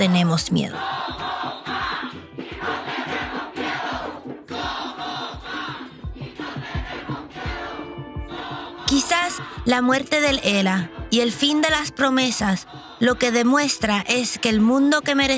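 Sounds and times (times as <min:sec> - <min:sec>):
speech: 0:00.0 - 0:01.0, 0:09.3 - 0:15.3
thousands of people shouting at the top of their voices: 0:00.8 - 0:09.6.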